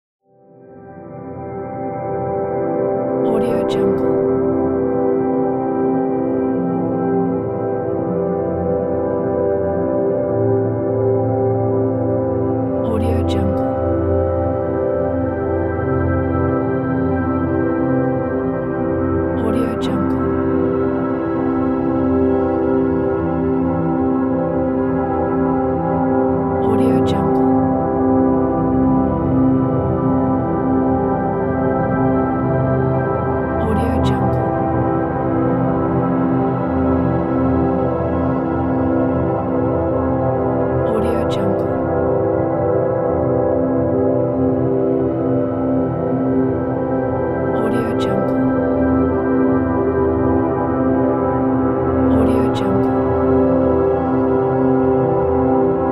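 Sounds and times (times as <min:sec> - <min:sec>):
ambient drone: 0:00.5 - 0:55.9.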